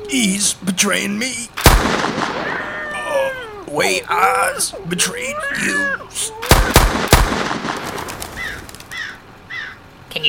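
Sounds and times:
speech: 0.1 - 2.6, 3.7 - 7.1
gunshots: 1.6 - 2.9, 6.4 - 8.7
laughter: 2.4 - 6.5.

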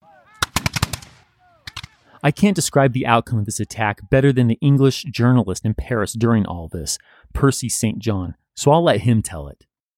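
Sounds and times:
rifle volley gunfire: 0.0 - 2.6
speech: 2.2 - 9.7.

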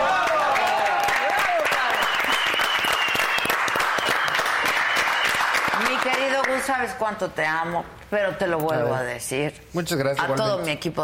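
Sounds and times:
applause: 0.0 - 6.7
speech: 6.6 - 11.0.

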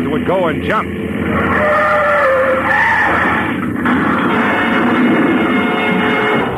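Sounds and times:
speech: 0.0 - 2.0
car crashing into a landing plane: 2.9 - 6.4.

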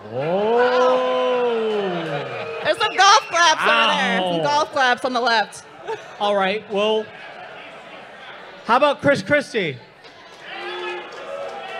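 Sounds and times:
live audience cheering and whooping: 0.0 - 4.7, 10.3 - 11.7
speech: 3.0 - 7.2, 8.7 - 9.9.

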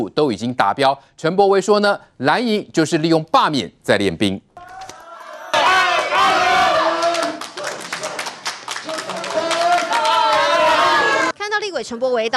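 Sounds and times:
speech: 0.0 - 4.8, 11.7 - 12.3
supporters shouting encouragement in unison: 4.6 - 11.4
scattered clapping: 6.0 - 10.8.

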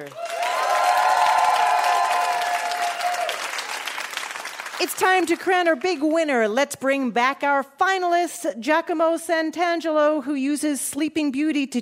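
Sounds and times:
cheering: 0.0 - 4.8
audience applause for a mystery guest: 0.0 - 5.6
speech: 4.8 - 11.7.

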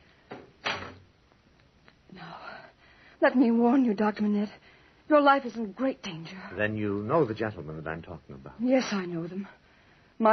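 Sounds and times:
doors being shut: 0.3 - 1.0
speech: 3.2 - 9.6.

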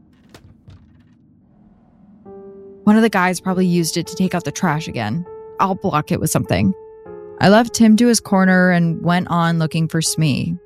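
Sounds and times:
old door pulled closed: 0.0 - 2.0
speech: 2.3 - 6.8, 7.4 - 10.6.

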